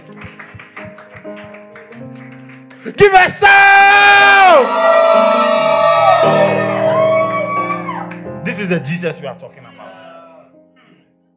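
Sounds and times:
audience clapping: 0.0 - 8.8
sustained keyboard chords: 0.0 - 11.3
speech: 2.8 - 6.5, 8.6 - 9.8.

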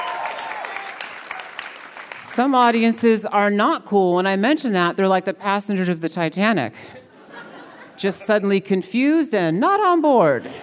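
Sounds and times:
audience cheering and applause: 0.0 - 2.3
speech: 2.4 - 7.0, 8.0 - 10.6
laughter: 6.9 - 8.6, 10.3 - 10.6.

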